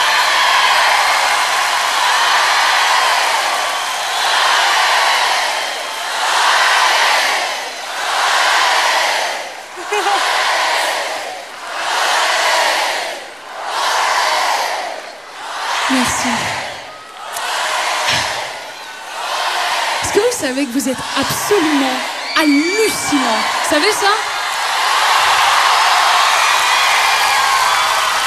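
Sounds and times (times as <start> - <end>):
large audience applauding and cheering for musicians: 0.0 - 28.2
speech: 20.7 - 24.3.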